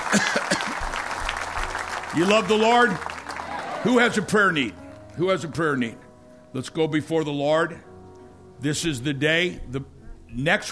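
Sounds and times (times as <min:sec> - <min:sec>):
audience clapping: 0:00.0 - 0:05.2
speech: 0:02.2 - 0:03.1, 0:03.8 - 0:07.9, 0:08.6 - 0:10.7.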